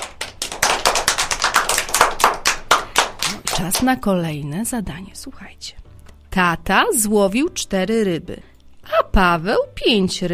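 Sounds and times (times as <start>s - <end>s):
group of children clapping: 0.0s - 3.9s
speech: 3.6s - 10.3s.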